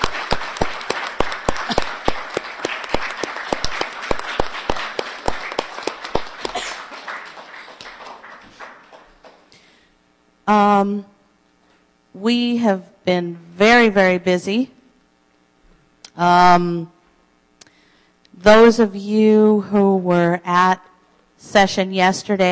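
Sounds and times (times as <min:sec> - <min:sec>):
audience clapping rhythmically: 0:00.0 - 0:09.7
speech: 0:10.5 - 0:11.2, 0:12.2 - 0:14.8, 0:16.2 - 0:16.9, 0:18.4 - 0:22.5.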